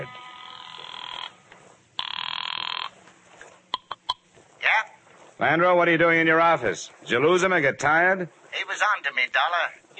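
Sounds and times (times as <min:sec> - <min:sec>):
telephone ringing: 0:00.0 - 0:03.0
speech: 0:05.4 - 0:09.8.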